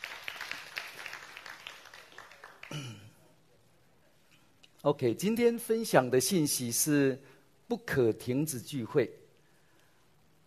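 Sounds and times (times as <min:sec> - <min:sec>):
crowd applause: 0:00.0 - 0:03.0
speech: 0:04.8 - 0:09.2.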